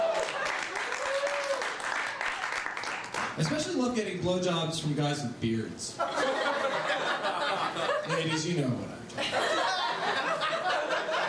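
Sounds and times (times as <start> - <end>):
crowd applauding: 0.0 - 3.7
speech: 3.4 - 6.3, 7.8 - 9.6
laughter: 6.0 - 11.2.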